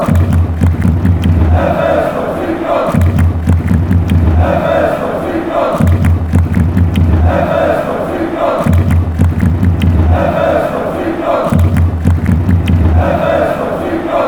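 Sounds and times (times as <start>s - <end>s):
fans chanting: 0.0s - 14.2s
people fighting: 0.0s - 14.2s.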